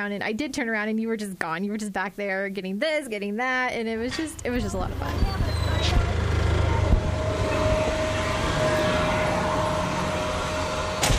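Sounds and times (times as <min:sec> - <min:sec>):
speech: 0:00.0 - 0:06.0
forklifts whizzing by in the Daisy Factory warehouse in Rogers: 0:04.1 - 0:11.1.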